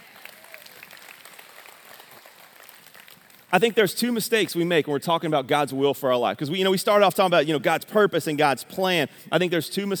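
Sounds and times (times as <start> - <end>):
audience clapping: 0.0 - 3.7
speech: 3.5 - 9.9.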